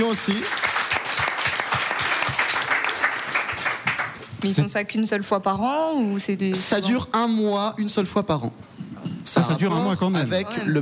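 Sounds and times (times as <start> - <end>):
speech: 0.0 - 0.6, 4.4 - 8.7, 9.4 - 10.7
audience applause: 0.0 - 4.2.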